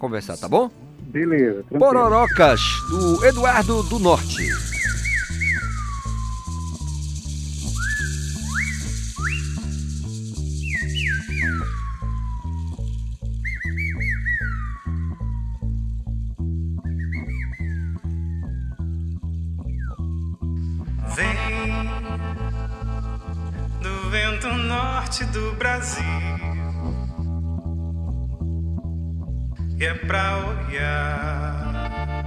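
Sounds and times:
speech: 0.0 - 4.7, 30.1 - 31.6
live band playing a song: 0.7 - 6.8
pulsing bass line: 0.7 - 32.2
swooping sliding high notes: 1.8 - 12.8.

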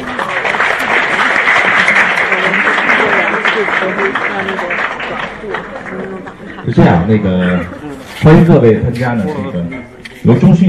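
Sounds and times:
audience applause: 0.0 - 6.6
speech: 6.8 - 10.6.

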